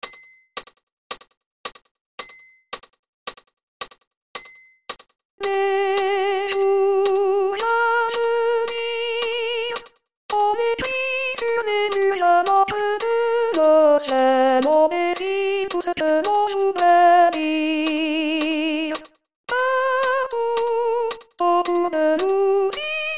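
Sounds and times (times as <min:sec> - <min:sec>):
soprano singing: 0:05.4 - 0:23.1.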